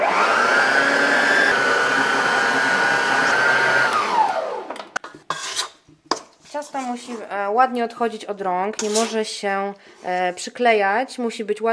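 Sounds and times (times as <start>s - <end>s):
electric mixer whisking gingerbread dough with butter and spice: 0.0s - 5.0s
speech: 6.9s - 11.7s.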